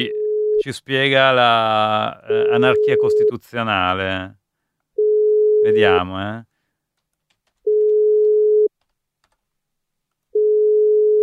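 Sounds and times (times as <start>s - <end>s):
telephone ringing tone on a call: 0.0s - 0.6s, 5.0s - 6.0s, 7.7s - 8.7s, 10.4s - 11.2s
speech: 0.0s - 4.4s, 5.6s - 6.5s.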